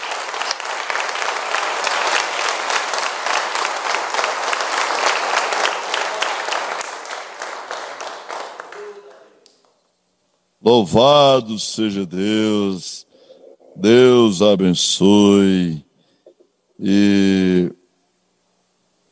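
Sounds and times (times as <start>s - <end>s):
audience applauding: 0.0s - 9.6s
speech: 10.7s - 13.0s, 13.8s - 15.8s, 16.8s - 17.6s.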